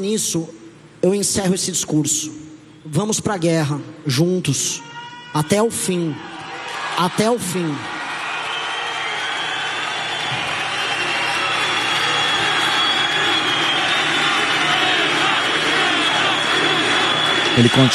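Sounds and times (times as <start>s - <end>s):
speech: 0.0s - 6.4s, 7.0s - 8.0s, 17.6s - 17.9s
party supporters applauding a speech: 6.6s - 17.9s.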